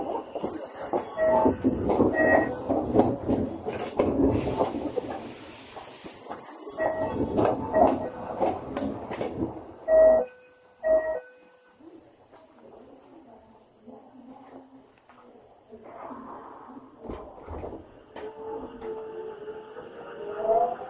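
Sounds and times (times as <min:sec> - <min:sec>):
Tokyo Metro 7000 series subway train running: 0:00.0 - 0:11.2, 0:17.1 - 0:20.8.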